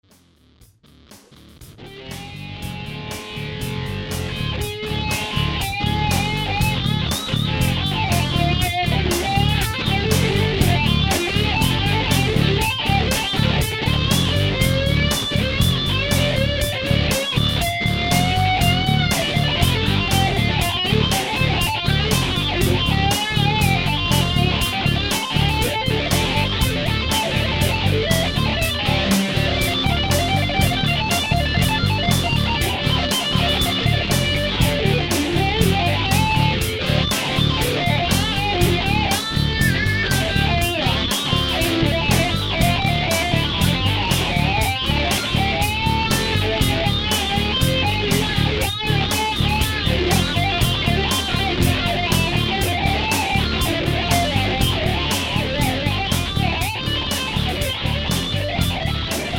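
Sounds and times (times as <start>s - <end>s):
guitar in Drop D tuning: 1.0s - 59.3s.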